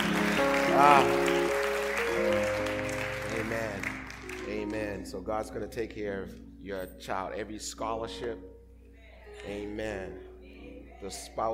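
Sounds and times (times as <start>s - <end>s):
audience clapping: 0.0s - 4.9s
speech: 0.8s - 1.3s, 4.7s - 8.5s, 9.4s - 10.3s, 11.0s - 11.5s.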